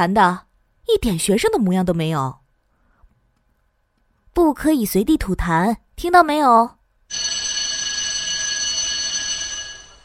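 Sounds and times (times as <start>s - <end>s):
speech: 0.0s - 2.4s, 4.4s - 6.8s
school bell ringing: 7.1s - 10.0s.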